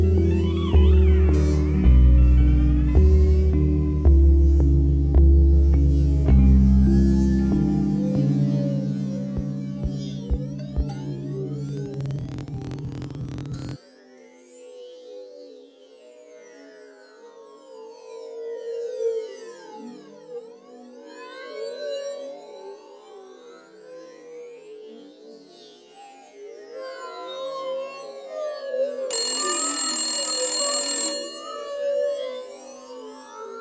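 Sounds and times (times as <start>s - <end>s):
ambience: 0.0s - 13.8s.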